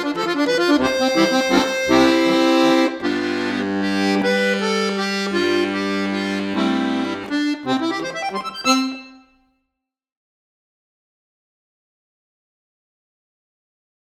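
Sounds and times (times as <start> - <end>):
instrumental music: 0.0 - 9.5.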